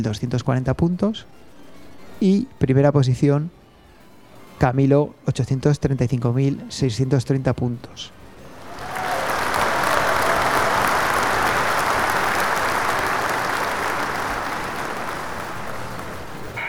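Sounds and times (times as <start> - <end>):
speech: 0.0 - 1.5, 2.2 - 3.6, 4.6 - 8.2
crowd applause: 8.4 - 16.6.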